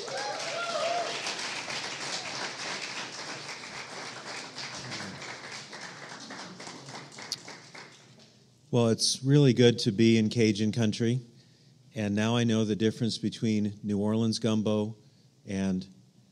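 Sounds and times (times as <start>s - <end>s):
audience applause welcoming a speaker in Cajun country: 0.0s - 8.2s
speech: 8.7s - 11.3s, 12.0s - 16.0s.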